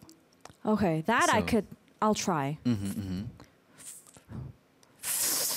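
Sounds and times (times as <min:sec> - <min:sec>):
speech: 0:00.7 - 0:03.4
slurping inhale with mouth pressure: 0:05.0 - 0:05.5.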